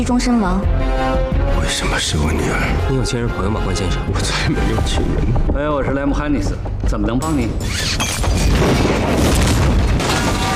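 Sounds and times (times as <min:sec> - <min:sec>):
speech: 0:00.0 - 0:09.4
bomb explosion: 0:08.5 - 0:10.5.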